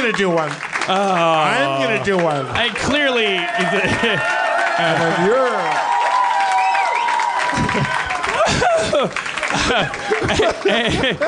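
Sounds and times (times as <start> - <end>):
speech: 0.0 - 5.9, 9.0 - 11.2
live audience applauding: 0.0 - 11.2
voices and whoops: 0.9 - 9.1
laughter: 3.5 - 5.6, 7.4 - 11.2.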